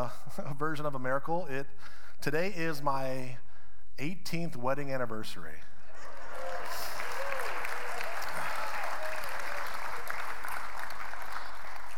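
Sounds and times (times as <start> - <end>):
speech: 0.0 - 6.8
audience applause: 6.0 - 11.9.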